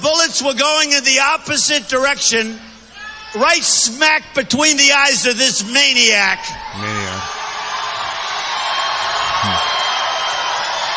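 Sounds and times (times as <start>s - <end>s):
speech: 0.3s - 2.7s, 3.3s - 7.4s
crowd cheering at a rally: 6.2s - 10.9s.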